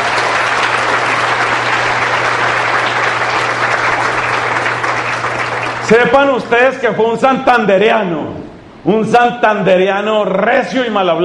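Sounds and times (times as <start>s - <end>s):
crowd applauding: 0.0s - 6.5s
speech: 5.9s - 11.2s.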